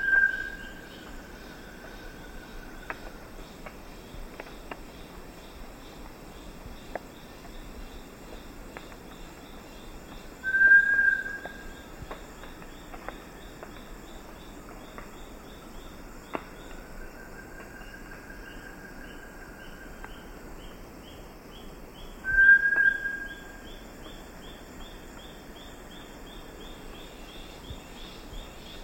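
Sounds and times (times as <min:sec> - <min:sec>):
Bartlett's tinamou whistling song: 0:10.5 - 0:11.5, 0:22.3 - 0:23.4.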